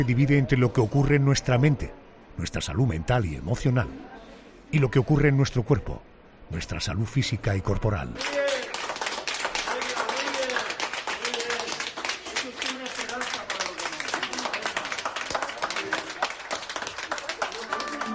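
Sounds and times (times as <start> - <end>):
speech: 0.0 - 8.6
hospital staff applauding: 8.2 - 18.1
voices calling and cheering: 9.7 - 18.1.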